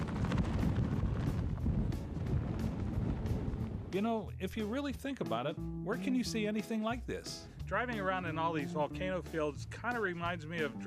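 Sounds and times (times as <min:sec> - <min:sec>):
strong wind over lava fields: 0:00.0 - 0:04.5
speech: 0:03.9 - 0:10.8.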